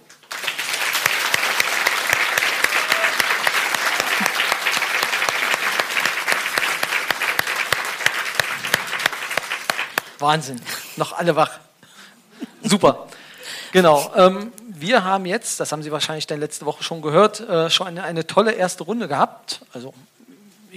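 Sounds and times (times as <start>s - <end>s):
audience applause: 0.0s - 10.2s
speech: 10.2s - 11.6s, 12.6s - 20.7s.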